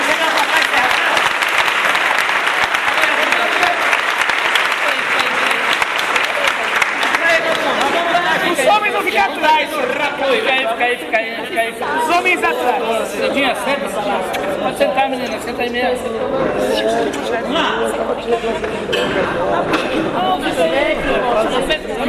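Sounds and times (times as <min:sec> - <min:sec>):
audience applauding: 0:00.0 - 0:10.0
scattered voices and cheering: 0:00.0 - 0:22.0.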